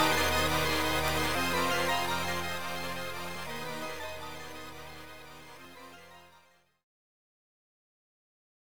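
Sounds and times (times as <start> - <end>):
background music: 0.0 - 6.4.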